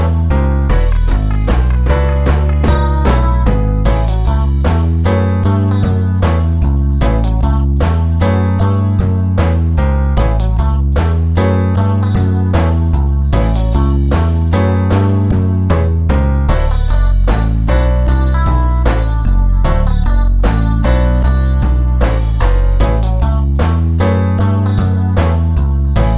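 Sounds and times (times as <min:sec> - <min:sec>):
twelve-bar blues boogie woogie bass line in A: 0:00.0 - 0:26.1.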